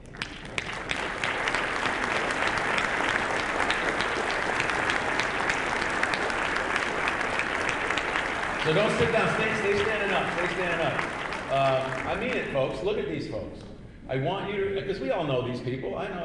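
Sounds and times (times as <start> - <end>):
large audience applause: 0.0 - 12.8
speech: 8.7 - 16.2.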